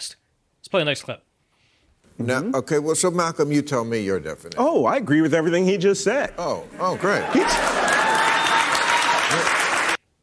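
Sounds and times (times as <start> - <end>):
speech: 0.0 - 1.3, 2.2 - 7.8
talk show studio audience clapping: 6.8 - 10.2.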